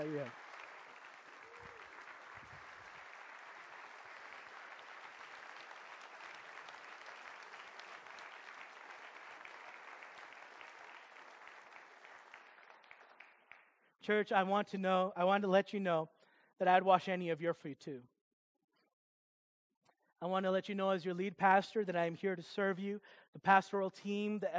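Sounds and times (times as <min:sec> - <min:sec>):
speech: 0:00.0 - 0:00.4, 0:14.1 - 0:18.1, 0:20.2 - 0:24.5
audience clapping: 0:00.0 - 0:13.8.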